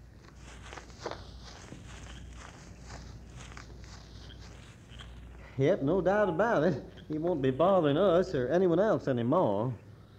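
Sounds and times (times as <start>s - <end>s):
footsteps walking through the woods: 0.0s - 5.6s
speech: 5.6s - 9.8s.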